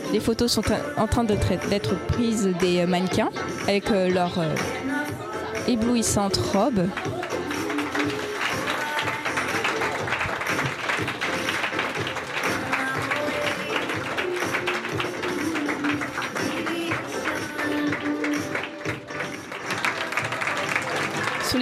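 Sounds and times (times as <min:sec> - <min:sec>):
speech: 0:00.1 - 0:04.9, 0:05.7 - 0:07.4
audience applause at fashion show: 0:06.9 - 0:21.5.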